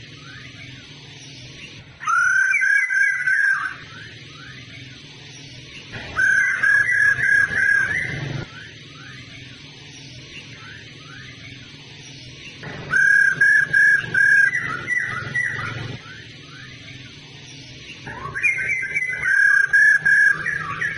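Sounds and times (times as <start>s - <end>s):
laughingthrush whistled phrases: 2.0s - 4.6s, 6.0s - 9.1s, 12.8s - 16.7s, 18.0s - 20.9s.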